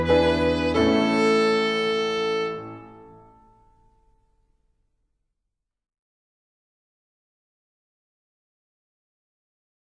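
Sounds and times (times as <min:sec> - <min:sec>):
strings performance: 0:00.0 - 0:03.4.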